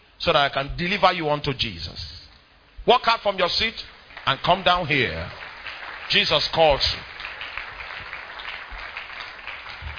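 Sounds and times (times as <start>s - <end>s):
speech: 0.2s - 2.2s, 2.8s - 5.4s, 6.1s - 7.1s
congregation clapping during a church altar call: 3.9s - 9.9s.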